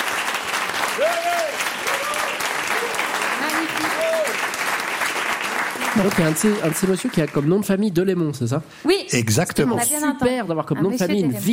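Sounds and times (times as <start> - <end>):
audience applause: 0.0 - 7.9
speech: 6.0 - 11.5.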